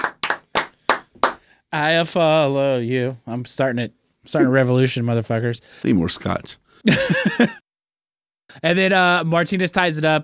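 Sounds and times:
hand claps: 0.0 - 1.4
speech: 1.7 - 7.6, 8.6 - 10.2.

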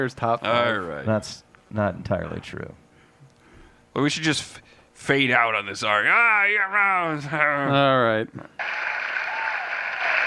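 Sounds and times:
speech: 0.0 - 2.8, 4.0 - 8.8
audience clapping: 8.6 - 10.2.

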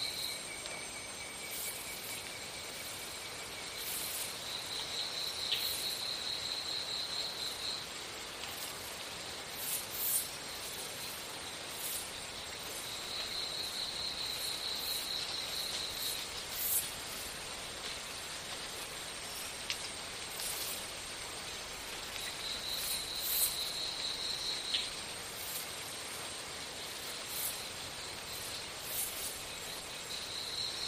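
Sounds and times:
jungle insects hissing: 0.0 - 30.8.

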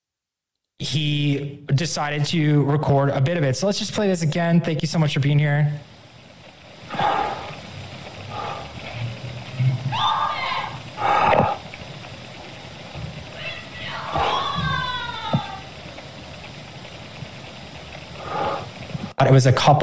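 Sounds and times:
low steady hiss: 0.0 - 19.8
speech: 0.8 - 5.9, 19.3 - 19.8
recorded scream in the University of Idaho murders case: 9.9 - 11.6, 13.4 - 15.7.

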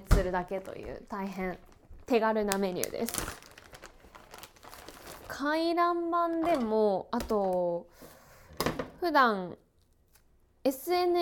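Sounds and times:
cooking paper crinkling while wrapping ingredients: 0.0 - 7.7
speech: 0.2 - 3.5, 5.3 - 8.1, 9.0 - 9.6, 10.6 - 11.1.

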